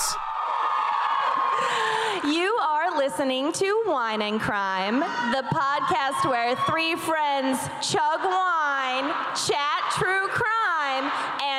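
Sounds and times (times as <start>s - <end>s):
crowd of women cheering wildly: 0.0s - 2.3s, 5.0s - 7.1s
speech: 3.1s - 11.5s.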